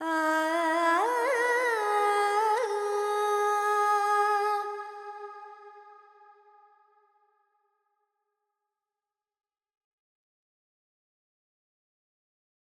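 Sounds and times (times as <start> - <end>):
Carnatic woman singing alaps in Phrygian mode: 0.0 - 5.7.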